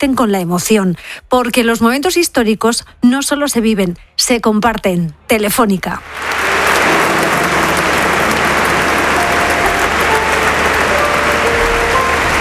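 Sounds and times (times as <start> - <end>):
speech: 0.0 - 6.5
crowd applause in a church: 6.0 - 12.3.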